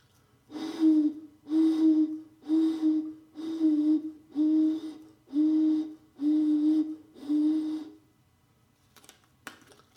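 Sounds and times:
blowing across the top of a plastic bottle: 0.5 - 8.0.

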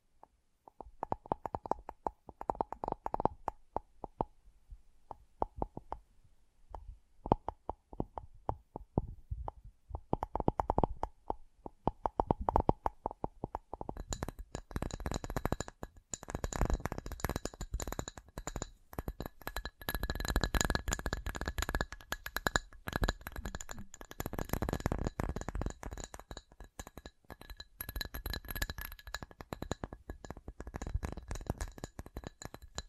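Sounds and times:
sharp tapping clicks: 0.7 - 4.3, 5.1 - 6.0, 6.7 - 32.8.

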